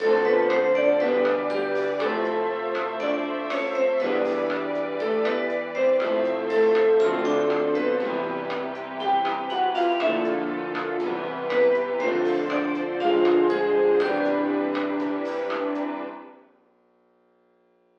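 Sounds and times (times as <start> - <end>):
elevator music: 0.0 - 16.4.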